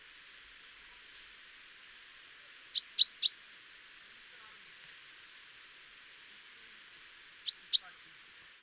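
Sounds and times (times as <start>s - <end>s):
Great tit calling: 2.5s - 3.4s, 7.4s - 8.1s.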